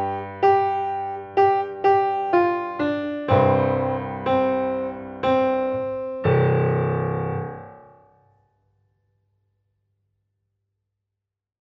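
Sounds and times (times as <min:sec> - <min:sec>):
rock piano: 0:00.0 - 0:08.0.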